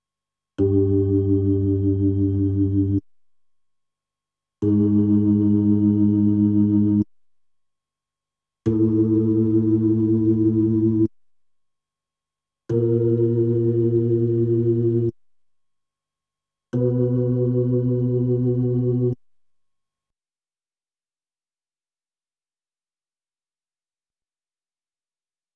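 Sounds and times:
Hammond B3 organ: 0.6s - 3.0s, 4.6s - 7.0s, 8.7s - 11.1s, 12.7s - 15.1s, 16.8s - 19.2s.

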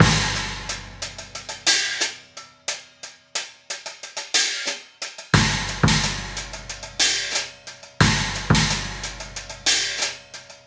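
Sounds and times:
kick drum: 0.0s - 1.0s, 5.4s - 6.3s, 8.0s - 9.0s
hi-hat: 0.0s - 10.6s.

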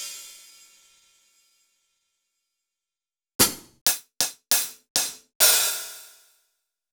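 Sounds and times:
Roland BK-5 hi-hats: 3.4s - 6.2s.

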